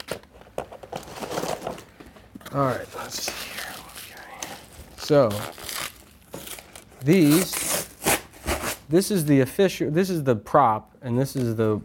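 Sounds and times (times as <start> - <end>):
speech: 2.5 - 3.5, 5.1 - 5.6, 7.0 - 7.6, 8.9 - 11.8
adhesive tape being handled: 2.6 - 8.8.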